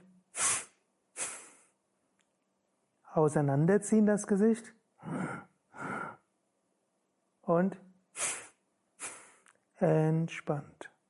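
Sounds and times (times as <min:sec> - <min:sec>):
sharp nasal breaths during a power-breathing yoga session: 0:00.0 - 0:01.8, 0:05.0 - 0:06.2, 0:08.2 - 0:09.5
speech: 0:03.1 - 0:05.2, 0:07.6 - 0:07.8, 0:09.8 - 0:10.8.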